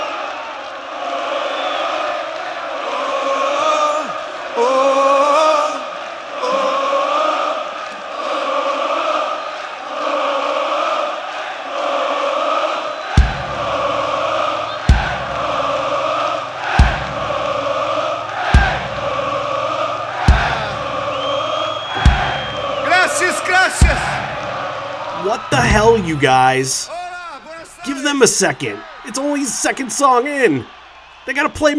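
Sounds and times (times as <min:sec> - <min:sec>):
huge concert crowd singing and chanting with whoops and cheers: 0:00.0 - 0:31.7
heavy rhythmic thumps: 0:13.1 - 0:27.5
speech: 0:26.1 - 0:27.0, 0:28.1 - 0:31.7.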